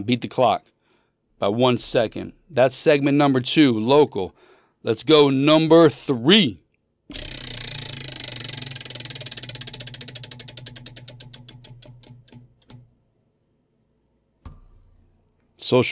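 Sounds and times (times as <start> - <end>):
speech: 0.0 - 0.7, 1.4 - 7.3
prize-style topic wheel spinning with ratcheting clicks: 7.1 - 12.9
dull knock: 14.4 - 15.0.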